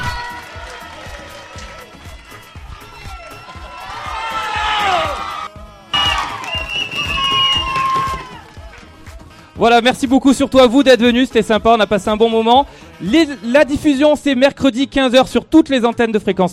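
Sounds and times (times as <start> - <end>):
crowd applause: 0.0 - 9.3
speech: 9.6 - 16.5.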